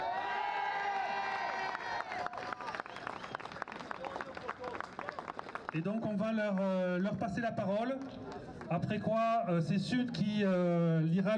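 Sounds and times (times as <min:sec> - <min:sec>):
audience applauding: 0:00.6 - 0:05.8
speech: 0:05.7 - 0:11.3.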